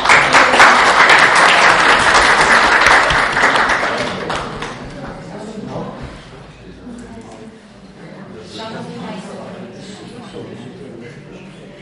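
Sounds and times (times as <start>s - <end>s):
warm applause: 0.0s - 5.0s.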